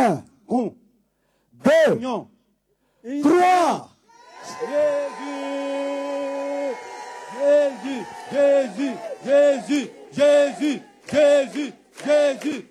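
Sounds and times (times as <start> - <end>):
speech: 0.0 - 0.8, 1.6 - 2.4, 3.0 - 3.9, 4.5 - 5.9, 7.4 - 12.6
crowd shouting a name in unison: 4.1 - 12.6.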